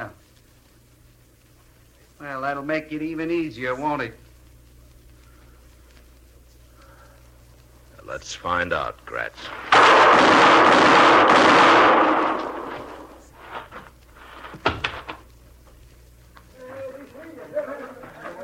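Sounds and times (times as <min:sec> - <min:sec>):
speech: 0:02.2 - 0:04.2, 0:08.3 - 0:11.5
gunshots: 0:09.5 - 0:13.2.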